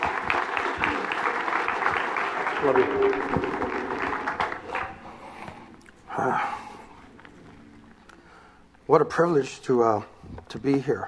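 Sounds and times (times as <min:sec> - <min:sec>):
audience applause at a Christian fellowship church service: 0:00.0 - 0:05.5
speech: 0:02.6 - 0:03.8, 0:06.2 - 0:06.6, 0:08.9 - 0:11.0.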